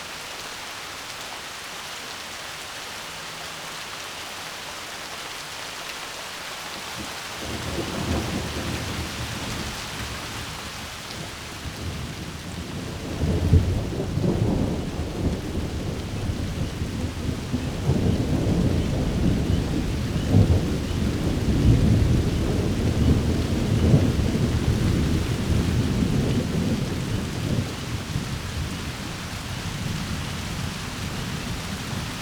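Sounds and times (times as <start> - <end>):
rain: 0.0 - 32.2
peals of thunder: 11.8 - 28.7.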